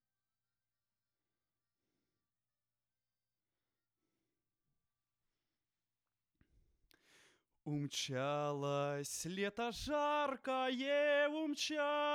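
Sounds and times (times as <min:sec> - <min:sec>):
vocals: 0:07.6 - 0:12.1.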